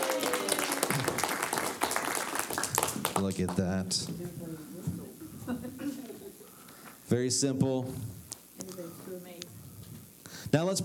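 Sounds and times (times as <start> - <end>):
audience applause: 0.0 - 3.6
speech: 3.2 - 4.8, 7.1 - 8.2, 10.5 - 10.8.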